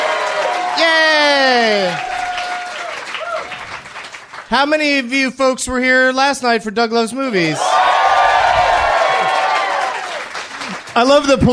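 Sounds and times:
live theater audience cheering: 0.0s - 4.4s, 7.4s - 11.5s
speech: 4.5s - 7.8s, 11.0s - 11.5s.

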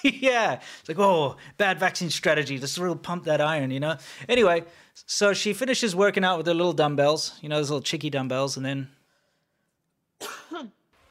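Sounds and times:
speech: 0.0s - 9.0s, 10.2s - 10.8s
woman coughing: 10.2s - 10.8s.

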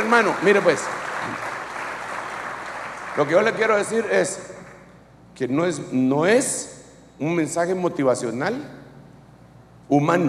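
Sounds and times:
audience applauding loudly: 0.0s - 4.9s
speech: 0.1s - 1.5s, 3.2s - 4.6s, 5.4s - 8.8s, 9.9s - 10.2s.

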